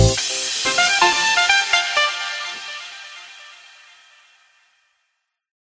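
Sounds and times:
saxophone: 0.2 - 4.6.

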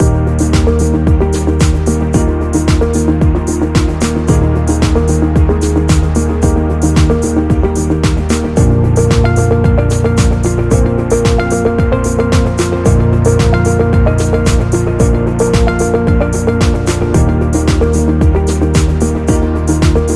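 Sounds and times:
corporate education music loop: 0.0 - 20.1.

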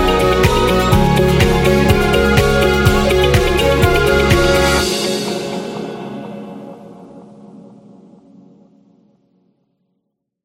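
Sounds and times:
corporate medical music: 0.0 - 7.6.

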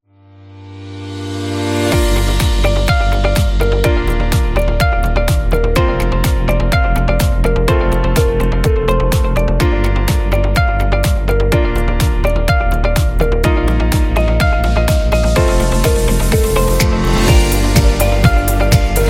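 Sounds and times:
corporate promo music: 1.5 - 19.0.

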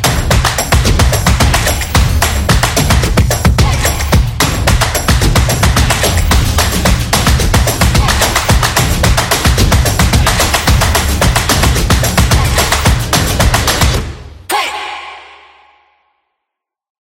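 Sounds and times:
drum: 0.0 - 14.2
hand clap: 0.0 - 14.2.

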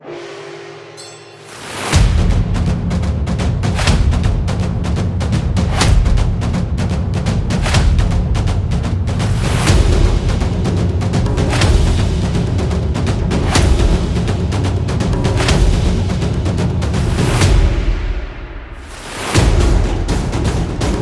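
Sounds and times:
Japan trailer tribal dance music: 0.0 - 20.9.

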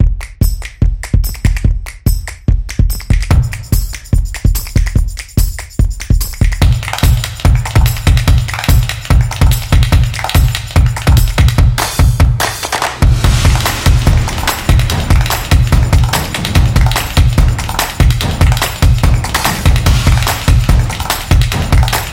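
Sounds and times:
rhythm: 0.0 - 22.1.

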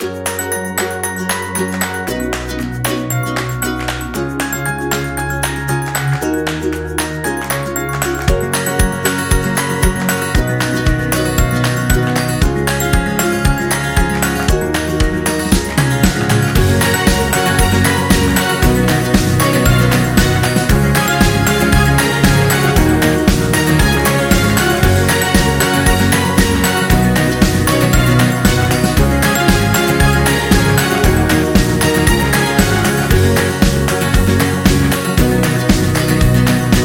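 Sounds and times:
happy background music: 0.0 - 36.8.

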